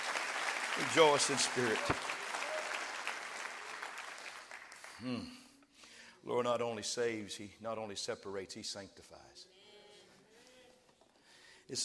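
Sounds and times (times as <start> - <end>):
audience clapping hands: 0.0 - 5.1
speech: 0.8 - 2.2, 5.0 - 5.4, 6.2 - 9.6, 11.7 - 11.8.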